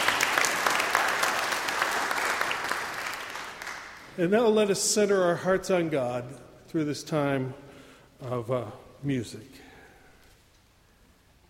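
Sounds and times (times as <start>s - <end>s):
audience applause: 0.0s - 4.1s
speech: 4.2s - 7.6s, 8.2s - 9.6s.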